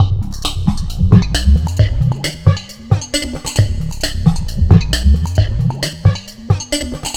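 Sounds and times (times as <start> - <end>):
strange drums: 0.0 - 7.1.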